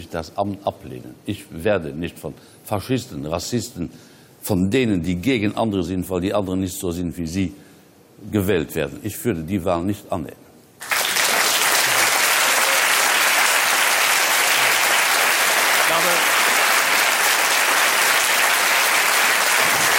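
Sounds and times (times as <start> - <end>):
speech: 0.0 - 7.6, 8.2 - 10.9
audience applause: 10.8 - 19.9.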